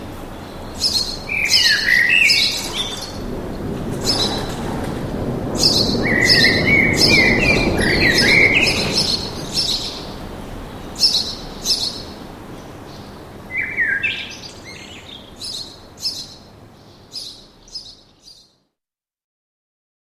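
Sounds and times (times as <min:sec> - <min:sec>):
birds chirping: 0:00.0 - 0:18.6
background rumble: 0:02.2 - 0:13.5.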